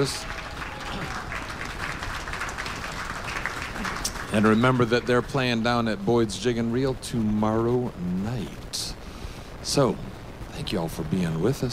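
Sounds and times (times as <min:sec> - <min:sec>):
speech: 0:00.0 - 0:01.0, 0:03.8 - 0:08.9, 0:09.7 - 0:11.7
live music show audience applause for the opening band: 0:00.0 - 0:05.8.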